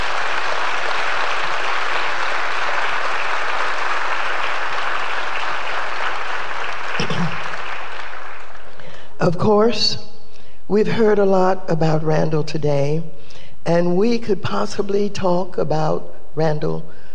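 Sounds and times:
audience applause: 0.0 - 8.8
speech: 9.2 - 10.0, 10.7 - 17.0.

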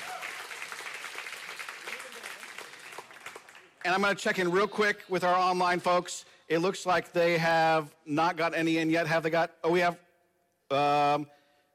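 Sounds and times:
audience applause: 0.0 - 3.9
speech: 3.8 - 10.0, 10.7 - 11.4.

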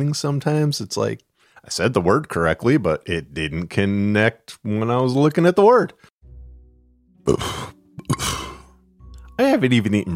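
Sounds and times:
speech: 0.0 - 6.1, 7.2 - 7.8, 9.4 - 10.1
person belching after drinking coffee: 7.2 - 8.8.

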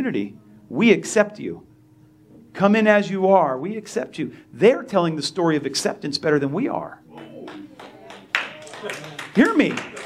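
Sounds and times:
speech: 0.0 - 1.7, 2.6 - 7.6, 8.8 - 10.0
audience clapping: 7.1 - 10.0.

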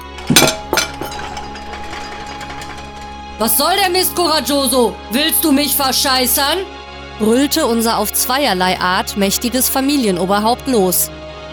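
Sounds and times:
fist banging down on cutlery: 0.0 - 3.1
speech: 3.4 - 11.2.

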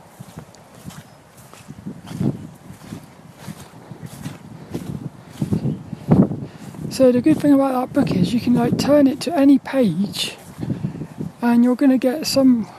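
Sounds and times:
footsteps squelching through squidgy wet fields: 0.0 - 12.6
light wind buffeting the microphone: 0.0 - 12.7
speech: 7.0 - 10.4, 11.4 - 12.7.

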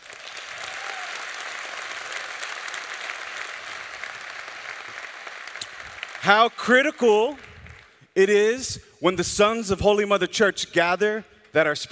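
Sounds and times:
audience applause: 0.0 - 8.0
speech: 6.2 - 7.5, 8.2 - 11.9.

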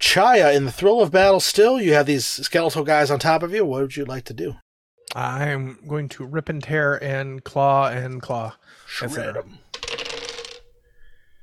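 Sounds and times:
speech: 0.1 - 9.7
dice rolling on a table during a tabletop role-playing game: 9.7 - 10.8.

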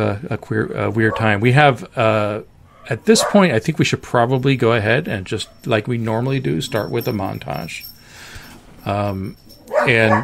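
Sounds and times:
speech: 0.0 - 7.9, 8.8 - 10.2
dog barking at skateboarders outside the fence: 1.1 - 1.4, 2.8 - 3.5, 9.7 - 10.2.

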